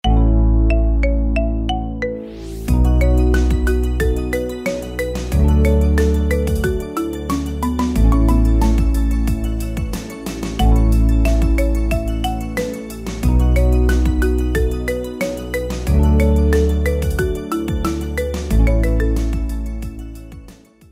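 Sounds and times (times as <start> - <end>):
marimba cover: 0.0 - 20.2.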